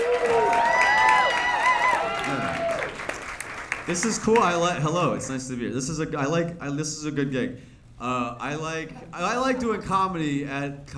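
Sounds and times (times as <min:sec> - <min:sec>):
comedy club audience applause: 0:00.0 - 0:04.2
speech: 0:03.9 - 0:10.9.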